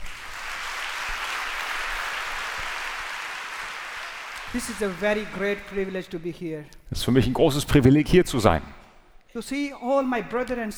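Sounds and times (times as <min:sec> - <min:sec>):
audience clapping: 0:00.0 - 0:06.1
speech: 0:04.5 - 0:10.7.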